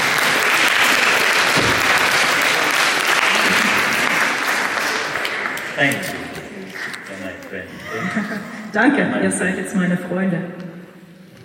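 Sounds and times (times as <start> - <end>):
audience applause: 0.0 - 7.3
laughter: 2.4 - 4.4, 6.5 - 8.9
speech: 5.8 - 6.1, 8.7 - 10.7.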